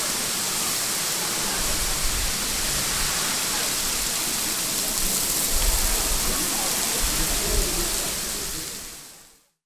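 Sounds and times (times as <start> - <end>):
waterfall: 0.0 - 9.6.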